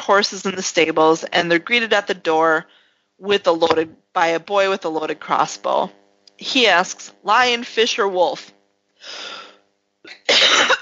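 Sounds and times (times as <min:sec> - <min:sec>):
speech: 0:00.1 - 0:09.4
person coughing: 0:10.1 - 0:10.8.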